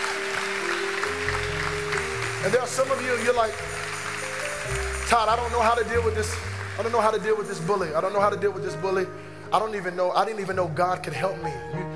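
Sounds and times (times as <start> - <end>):
audience clapping hands: 0.0 - 8.0
speech: 2.4 - 3.8, 4.7 - 11.9.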